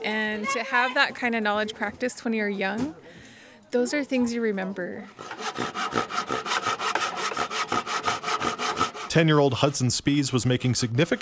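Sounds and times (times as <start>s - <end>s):
speech: 0.0s - 6.2s, 9.2s - 11.2s
chiseling wood by hand: 5.0s - 11.2s.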